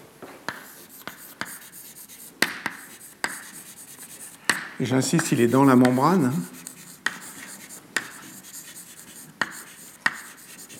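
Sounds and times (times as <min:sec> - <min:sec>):
writing an equation on a board during a chemical kinetics lecture: 0:00.5 - 0:10.7
speech: 0:04.8 - 0:06.6.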